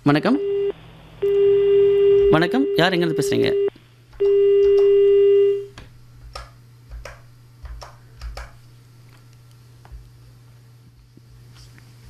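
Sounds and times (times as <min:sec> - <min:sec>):
speech: 0:00.0 - 0:00.5, 0:02.3 - 0:03.6
phone line tone after a caller's call is disconnected: 0:00.3 - 0:05.7.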